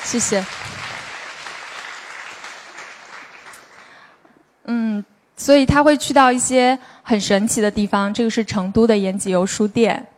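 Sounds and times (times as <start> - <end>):
audience applause: 0.0 - 4.2
speech: 0.1 - 0.7, 5.5 - 10.1.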